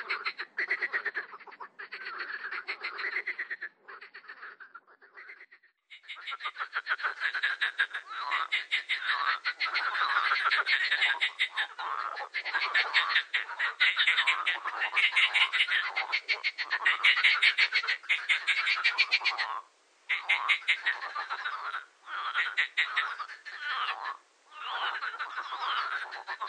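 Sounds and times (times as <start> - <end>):
marsh frog croaking: 0.0 - 26.4.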